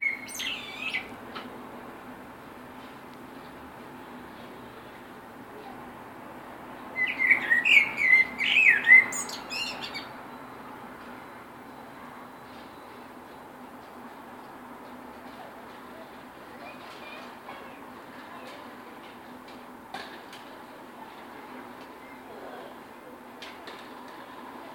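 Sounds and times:
blackbird singing on tree: 0:00.0 - 0:01.1, 0:07.0 - 0:10.1.

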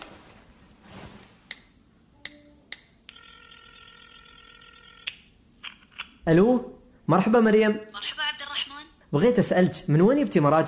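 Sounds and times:
telephone multi-tone buzz: 0:03.1 - 0:05.1
speech: 0:06.3 - 0:08.2, 0:09.1 - 0:10.6.

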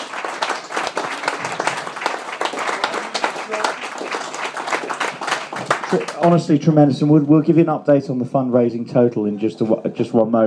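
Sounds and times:
crowd applauding: 0:00.0 - 0:06.6
speech: 0:05.9 - 0:10.4.

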